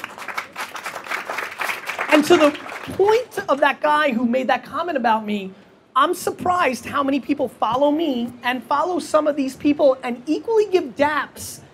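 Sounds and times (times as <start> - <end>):
crowd applause: 0.0 - 3.0
speech: 2.1 - 11.6.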